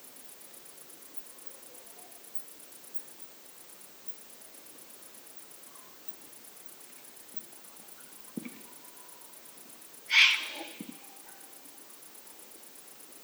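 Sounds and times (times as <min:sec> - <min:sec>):
juvenile eagle owl: 0:10.1 - 0:11.5.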